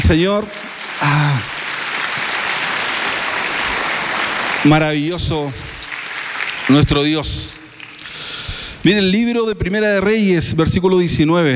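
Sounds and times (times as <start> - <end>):
speech: 0.0 - 1.5, 4.6 - 5.7, 6.7 - 7.6, 8.8 - 11.5
congregational applause during a church service: 0.0 - 8.8.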